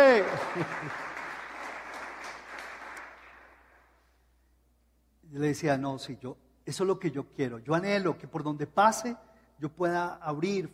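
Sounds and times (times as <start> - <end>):
speech: 0.0 - 1.1, 5.3 - 10.7
laughter: 0.0 - 1.2
audience applause: 0.0 - 3.6.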